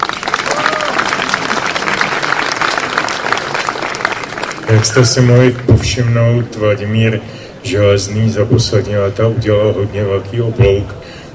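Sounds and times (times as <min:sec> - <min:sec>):
audience applause: 0:00.0 - 0:05.7
speech: 0:04.7 - 0:11.3.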